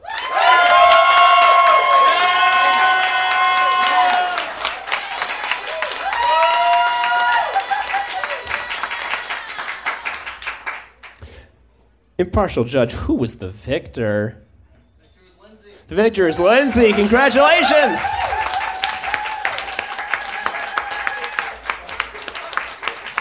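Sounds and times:
audience applause and cheering: 0.0 - 11.2, 16.2 - 23.1
speech: 12.3 - 14.5, 15.9 - 18.2.

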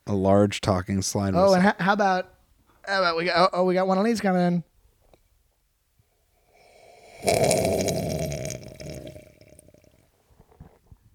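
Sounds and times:
speech: 0.1 - 4.7, 7.2 - 7.9
man slurping coffee: 6.6 - 10.0.

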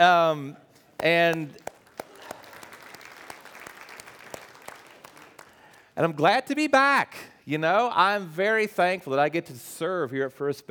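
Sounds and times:
speech: 0.0 - 1.7, 6.0 - 10.6
audience clapping: 1.0 - 6.0.

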